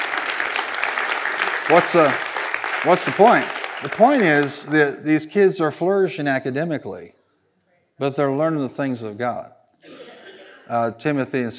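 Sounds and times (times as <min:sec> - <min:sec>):
audience applauding: 0:00.0 - 0:05.1
speech: 0:01.7 - 0:07.2, 0:08.0 - 0:10.0, 0:10.7 - 0:11.5.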